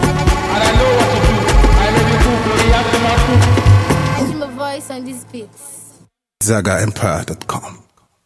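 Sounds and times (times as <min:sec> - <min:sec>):
drums: 0:00.0 - 0:04.3.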